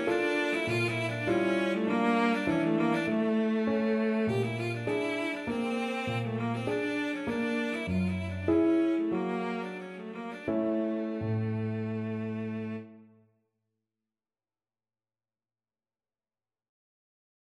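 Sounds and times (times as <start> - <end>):
cello playing a Romanian folk dance: 0.0 - 13.0.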